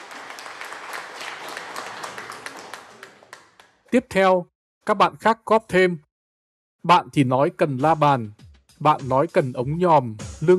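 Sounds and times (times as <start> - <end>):
group clapping: 0.0 - 4.0
speech: 3.9 - 6.0, 6.8 - 10.5.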